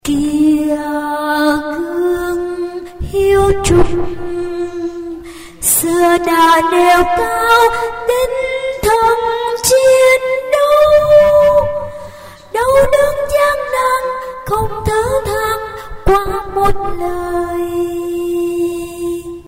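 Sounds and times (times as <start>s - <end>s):
tenor singing: 0.0s - 19.4s.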